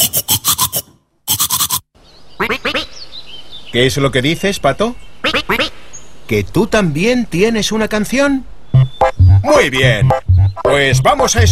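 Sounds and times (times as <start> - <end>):
brushing teeth with a toothbrush: 0.0 - 1.8
speech: 3.7 - 5.6, 6.3 - 8.5, 9.4 - 11.5.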